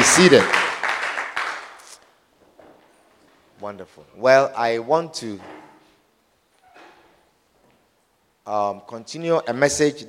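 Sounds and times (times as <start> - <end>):
audience clapping hands: 0.0 - 2.1
speech: 0.2 - 0.6, 3.6 - 5.6, 8.5 - 10.0.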